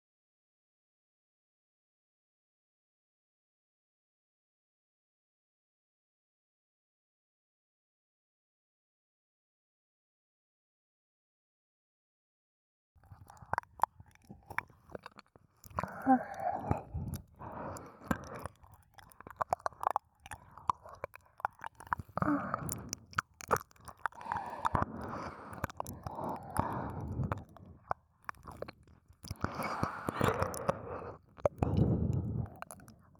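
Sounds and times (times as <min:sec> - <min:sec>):
ear licking: 0:13.0 - 0:33.1
oral sex sounds: 0:13.0 - 0:33.1.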